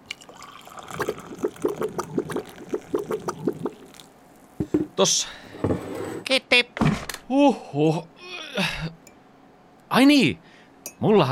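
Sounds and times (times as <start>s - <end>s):
liquid being poured into a mug: 0.0s - 4.7s
speech: 5.0s - 5.4s, 6.3s - 8.8s, 10.0s - 10.4s, 11.0s - 11.2s.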